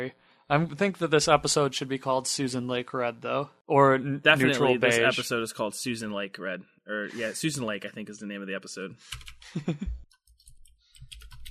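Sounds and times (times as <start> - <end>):
speech: 0.0 - 10.0
typing on a computer keyboard: 9.1 - 9.4, 10.2 - 11.4.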